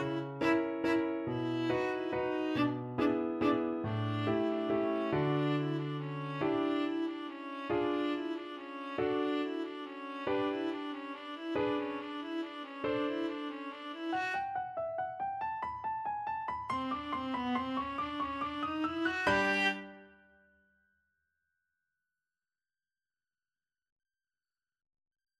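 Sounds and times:
viola playing a waltz: 0.0s - 20.1s.

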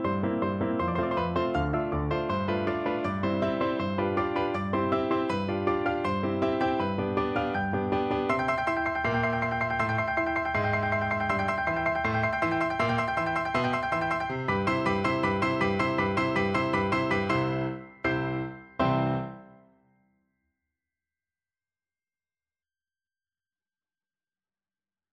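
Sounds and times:
piano duet finale: 0.0s - 19.7s.

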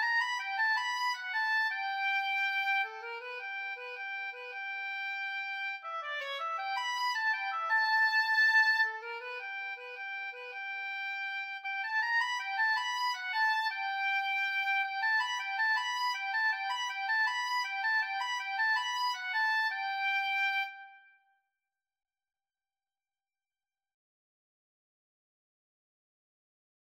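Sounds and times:
oboe duet: 0.0s - 21.1s.

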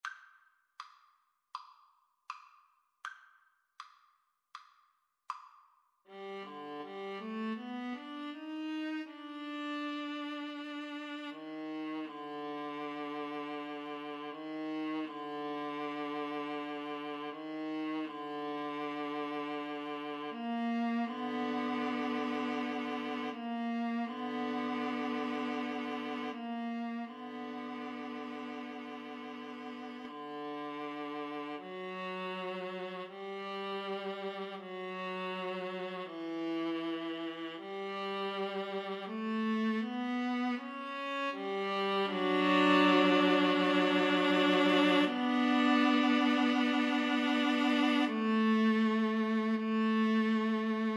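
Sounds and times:
violin: 6.1s - 50.9s.

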